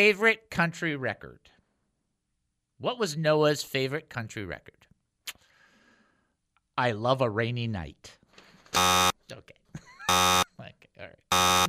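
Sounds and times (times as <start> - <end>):
speech: 0.0 - 1.6, 2.8 - 4.9, 6.8 - 8.2, 8.8 - 11.6
game show buzzers: 8.8 - 9.2, 10.1 - 10.5, 11.3 - 11.6.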